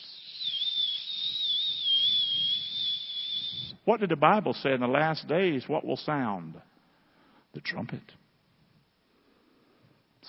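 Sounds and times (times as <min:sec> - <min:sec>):
imitated pressure cooker whistling: 0:00.0 - 0:03.8
speech: 0:03.9 - 0:06.7, 0:07.6 - 0:08.2.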